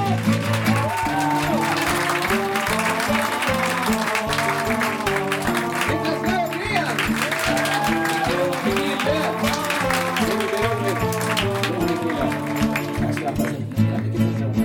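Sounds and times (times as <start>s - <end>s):
laughter: 0.0s - 13.7s
strong applause from audience: 0.0s - 14.0s.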